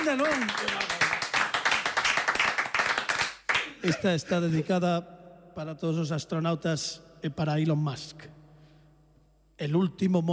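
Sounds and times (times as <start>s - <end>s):
hands clapping: 0.0s - 4.2s
speech: 0.1s - 1.1s, 3.8s - 8.4s, 9.6s - 10.3s.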